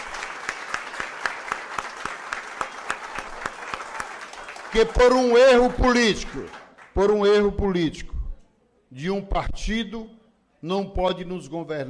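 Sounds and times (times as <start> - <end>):
round of applause: 0.0 - 7.6
speech: 4.7 - 8.1, 8.9 - 11.8.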